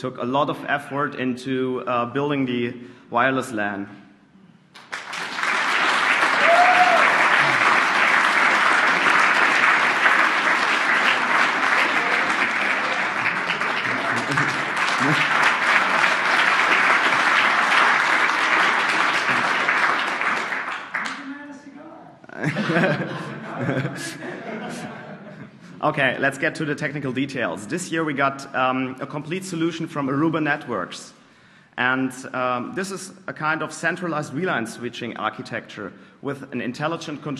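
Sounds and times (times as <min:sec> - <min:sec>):
speech: 0:00.0 - 0:04.0, 0:25.9 - 0:31.2, 0:31.8 - 0:37.3
audience applause: 0:04.8 - 0:21.5
laughter: 0:07.4 - 0:07.8, 0:11.7 - 0:16.2, 0:19.2 - 0:19.8, 0:22.3 - 0:25.8.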